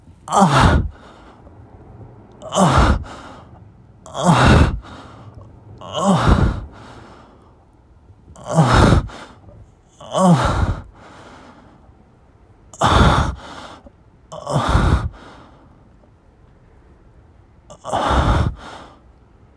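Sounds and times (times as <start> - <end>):
person breathing and moaning while masturbating: 0.3 - 1.4, 2.4 - 7.5, 8.4 - 11.6, 12.8 - 15.5, 17.7 - 18.9.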